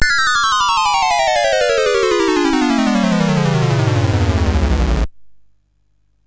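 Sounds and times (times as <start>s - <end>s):
MOS 6581R3 SID sound chip music: 0.0s - 5.1s.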